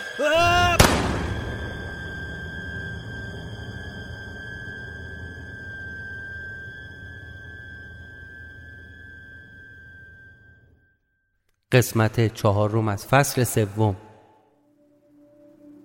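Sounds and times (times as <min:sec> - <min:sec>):
high-pitched ringing: 0:00.0 - 0:11.0
speech: 0:00.2 - 0:00.6, 0:11.7 - 0:14.0
rifle shot: 0:00.7 - 0:01.8
wavering rising tone: 0:01.0 - 0:10.9.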